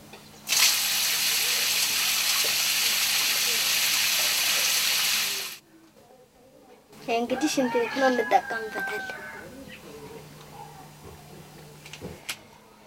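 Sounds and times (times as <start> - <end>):
water pouring from an outdoor shower for washing feet: 0.5 - 5.6
speech: 7.1 - 9.3.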